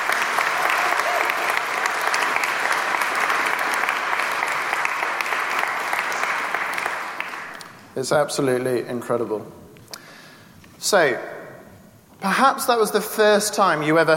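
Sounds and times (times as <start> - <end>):
audience applause: 0.0 - 7.7
speech: 8.0 - 9.6, 10.8 - 11.4, 12.2 - 14.1.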